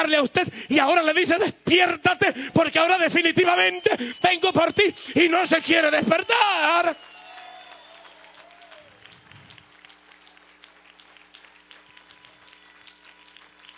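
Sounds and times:
speech: 0.0s - 7.1s
thin scattered audience applause: 5.6s - 13.7s.

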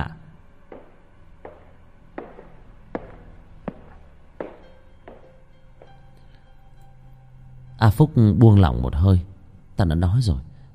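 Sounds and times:
low hum: 0.0s - 10.7s
footsteps knocking on floor downstairs: 0.6s - 6.1s
speech: 7.8s - 10.5s.

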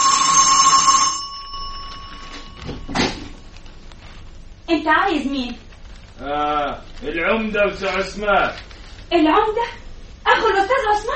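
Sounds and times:
electric doorbell ringing: 0.0s - 3.0s
speech: 4.7s - 11.1s.

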